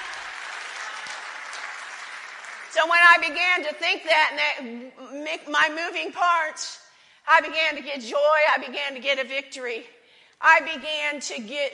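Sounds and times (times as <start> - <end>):
audience applause: 0.0 - 2.8
speech: 2.8 - 11.7.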